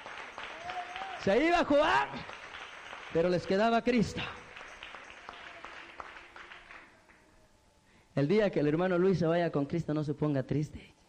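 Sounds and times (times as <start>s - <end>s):
audience applause: 0.0s - 7.2s
speech: 1.2s - 2.3s, 3.1s - 4.4s, 8.2s - 11.0s.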